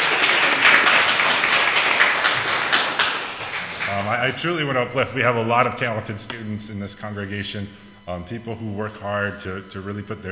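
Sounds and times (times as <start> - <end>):
audience applause: 0.0 - 4.4
speech: 4.3 - 10.3.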